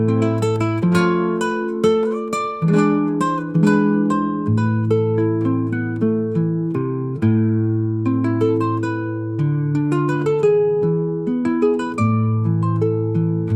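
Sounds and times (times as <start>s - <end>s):
Spanish guitar melody: 0.0s - 13.5s.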